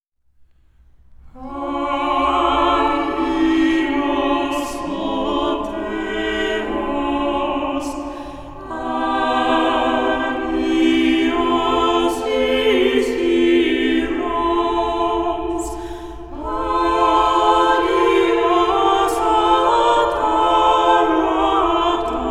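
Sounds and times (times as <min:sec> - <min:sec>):
choir singing: 0:01.3 - 0:22.3.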